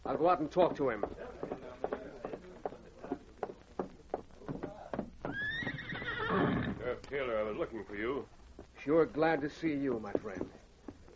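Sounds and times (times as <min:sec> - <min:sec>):
hooves clopping: 0:00.0 - 0:11.1
speech: 0:00.1 - 0:01.3, 0:07.1 - 0:10.6
horse whinnying: 0:05.3 - 0:06.8.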